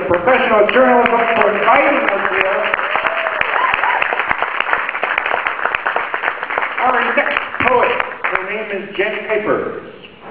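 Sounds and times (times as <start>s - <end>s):
speech: 0.2s - 1.2s
audience applause: 0.7s - 8.4s.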